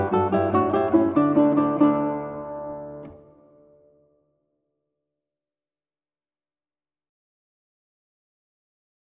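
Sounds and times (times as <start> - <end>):
ukulele: 0.0 - 4.1
guitar: 0.0 - 4.4.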